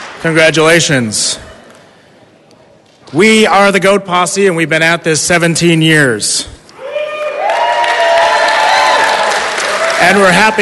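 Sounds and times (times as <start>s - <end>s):
speech: 0.2s - 1.5s, 3.1s - 6.6s, 10.0s - 10.6s
crowd applauding and cheering: 6.8s - 10.6s.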